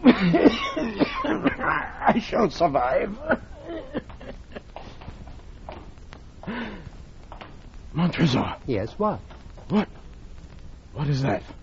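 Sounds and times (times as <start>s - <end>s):
man coughing: 0.0s - 2.3s, 3.2s - 4.6s
speech: 0.2s - 0.4s, 2.4s - 3.5s, 8.0s - 10.0s, 11.0s - 11.6s.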